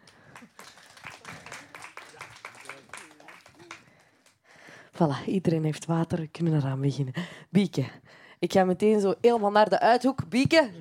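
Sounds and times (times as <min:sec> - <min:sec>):
audience applause: 0:00.0 - 0:04.1
speech: 0:05.0 - 0:10.7.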